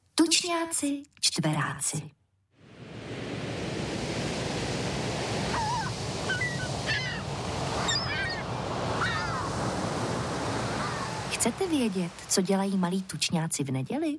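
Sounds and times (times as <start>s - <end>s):
speech: 0.2s - 2.2s, 11.4s - 14.1s
ocean waves on shore: 2.6s - 13.8s.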